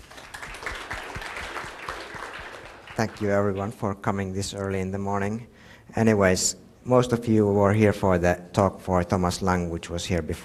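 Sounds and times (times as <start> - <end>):
conference audience applauding to welcome a speaker: 0.0 - 3.7
speech: 3.0 - 10.4.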